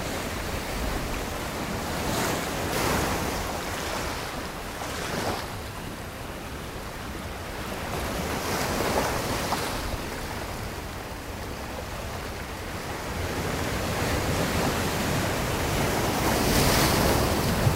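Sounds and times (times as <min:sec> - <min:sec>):
ocean ambience: 0:00.0 - 0:17.7.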